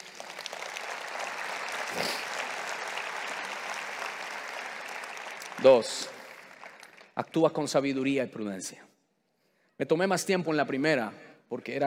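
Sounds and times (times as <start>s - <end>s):
audience applause: 0.0s - 7.2s
speech: 5.6s - 6.2s, 7.2s - 8.9s, 9.8s - 11.8s.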